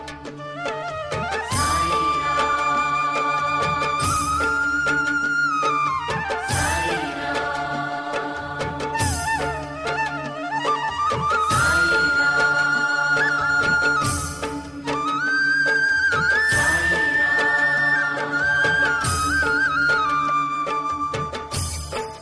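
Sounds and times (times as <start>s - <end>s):
flute ringtone: 0.2s - 7.9s, 9.0s - 22.2s.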